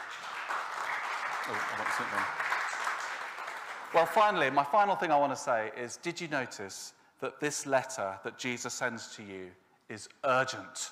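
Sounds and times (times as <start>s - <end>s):
audience clapping: 0.0s - 4.9s
speech: 1.5s - 2.6s, 3.9s - 10.8s.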